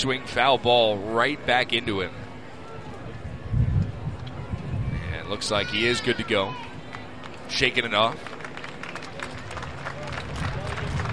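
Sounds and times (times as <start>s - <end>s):
speech: 0.0s - 2.2s, 5.3s - 6.7s, 7.5s - 8.3s
ballpark crowd murmur: 0.0s - 11.1s
ballpark crowd applauding: 6.9s - 11.1s.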